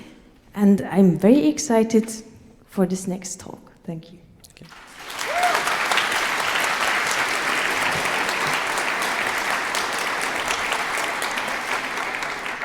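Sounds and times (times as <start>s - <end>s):
speech: 0.6s - 4.8s
audience applause: 4.7s - 12.6s.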